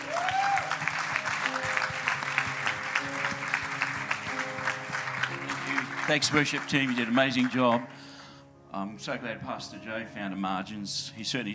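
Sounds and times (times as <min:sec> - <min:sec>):
church congregation applauding to welcome a pastor: 0:00.0 - 0:08.1
speech: 0:06.1 - 0:08.0, 0:08.7 - 0:11.5.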